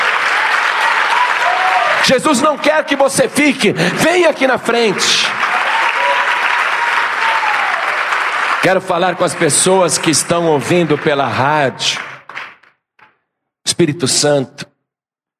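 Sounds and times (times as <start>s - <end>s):
audience applauding: 0.0s - 3.2s, 4.0s - 12.7s
speech: 2.1s - 5.5s, 8.6s - 12.1s, 13.8s - 14.7s.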